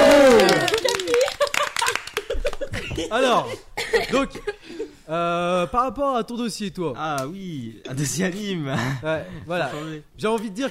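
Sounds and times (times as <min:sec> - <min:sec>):
audience clapping: 0:00.0 - 0:02.8
laughter: 0:00.1 - 0:04.9, 0:08.7 - 0:10.6
speech: 0:03.0 - 0:04.5, 0:05.1 - 0:10.6.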